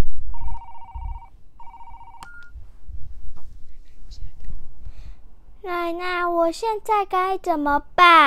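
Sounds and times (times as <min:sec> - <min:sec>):
telephone ringing: 0:00.3 - 0:02.6
speech: 0:05.9 - 0:08.2.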